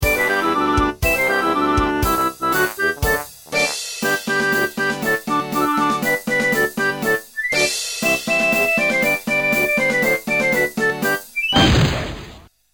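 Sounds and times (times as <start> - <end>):
polka music: 0.0 - 11.4.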